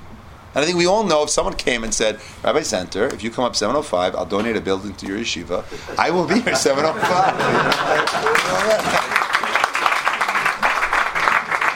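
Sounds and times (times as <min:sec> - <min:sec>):
speech: 0:00.5 - 0:09.2
laughter: 0:05.6 - 0:11.6
audience clapping: 0:07.0 - 0:11.7.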